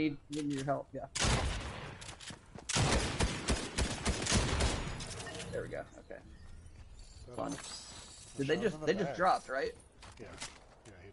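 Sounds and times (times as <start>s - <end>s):
speech: 0.0s - 1.6s, 5.6s - 6.4s, 7.3s - 7.8s, 8.4s - 11.1s
video game gunfire: 2.7s - 5.3s.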